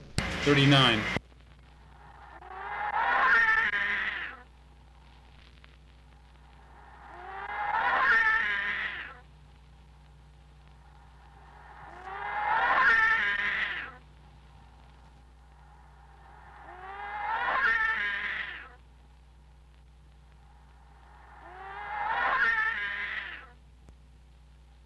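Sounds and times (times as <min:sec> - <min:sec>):
constant low hum: 0:00.0 - 0:24.8
speech: 0:00.4 - 0:01.2
processed cat meows: 0:02.4 - 0:04.4, 0:07.2 - 0:09.2, 0:11.9 - 0:14.0, 0:16.7 - 0:18.8, 0:21.5 - 0:23.6.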